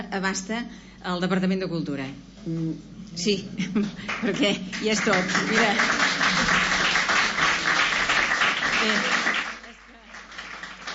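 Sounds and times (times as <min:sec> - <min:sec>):
speech: 0:00.1 - 0:06.7, 0:08.8 - 0:09.2
audience applause: 0:04.1 - 0:10.9.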